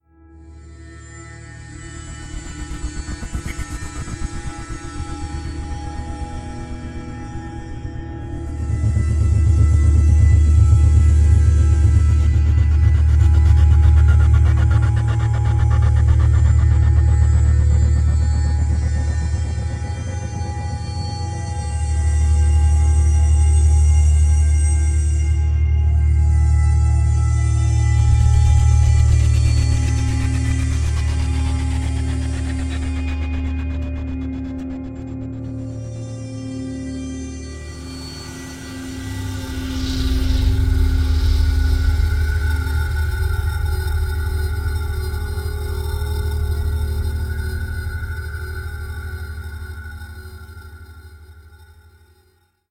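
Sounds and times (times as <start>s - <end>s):
suspense music: 0.3s - 52.4s.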